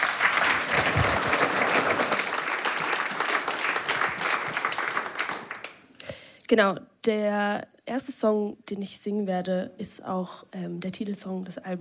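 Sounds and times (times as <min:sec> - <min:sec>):
audience applause: 0:00.0 - 0:05.9
speech: 0:06.5 - 0:11.7.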